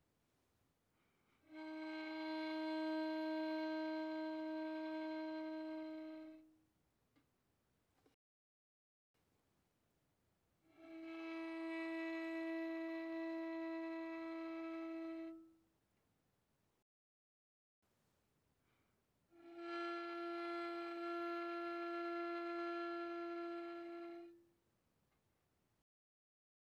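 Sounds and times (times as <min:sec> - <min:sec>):
violin bowed softly on the G string: 0:01.4 - 0:06.4, 0:10.7 - 0:15.5, 0:19.4 - 0:24.4.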